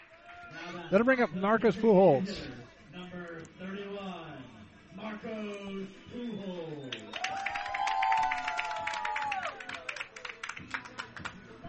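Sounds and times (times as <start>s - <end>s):
speech: 0.6s - 2.6s
high whistle-like tone: 5.9s - 7.5s
baseball crowd cheering: 6.3s - 10.9s
people clapping: 6.8s - 11.6s.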